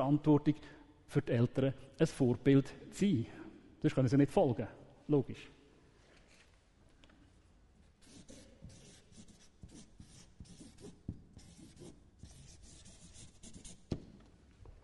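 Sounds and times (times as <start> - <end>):
speech: 0.0 - 5.6
pen handwriting: 8.0 - 13.9.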